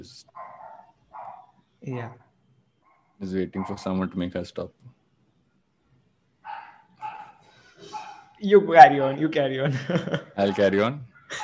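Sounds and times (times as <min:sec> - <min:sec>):
speech: 0:00.0 - 0:00.4, 0:01.8 - 0:02.2, 0:03.2 - 0:05.0, 0:08.4 - 0:11.4
dog barking: 0:00.3 - 0:01.6, 0:02.9 - 0:04.0, 0:06.5 - 0:08.4, 0:10.4 - 0:11.4
laughter: 0:09.2 - 0:11.4.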